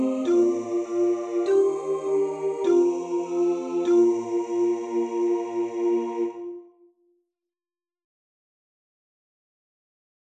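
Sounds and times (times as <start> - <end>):
alto voice singing a Kyrie: 0.0 - 6.8.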